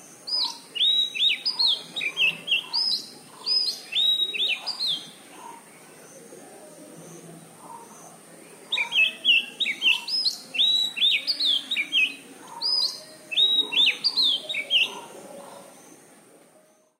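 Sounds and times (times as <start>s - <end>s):
magpie robin singing: 0.2s - 6.2s, 8.6s - 16.1s.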